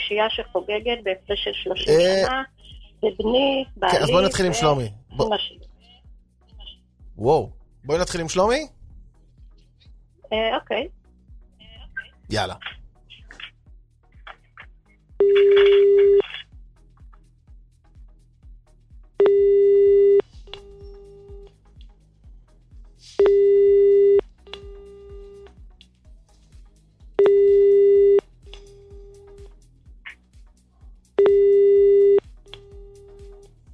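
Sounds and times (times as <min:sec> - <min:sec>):
speech: 0:00.1 - 0:05.7, 0:07.2 - 0:08.8, 0:10.3 - 0:11.0, 0:12.3 - 0:12.8, 0:15.2 - 0:16.4
telephone busy or unanswered-call signal: 0:15.2 - 0:16.2, 0:19.2 - 0:21.4, 0:23.2 - 0:25.4, 0:27.2 - 0:28.2, 0:31.2 - 0:33.3.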